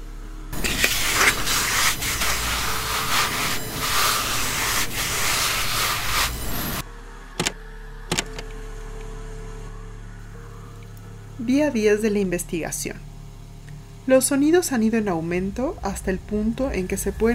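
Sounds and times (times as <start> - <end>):
harsh scratching rasp: 0.6 - 6.8
speech: 11.5 - 13.1, 14.1 - 17.3.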